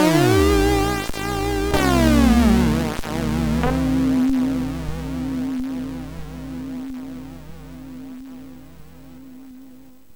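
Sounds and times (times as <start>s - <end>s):
MOS6581R4 synthesizer chip whoosh: 0.1s - 6.0s.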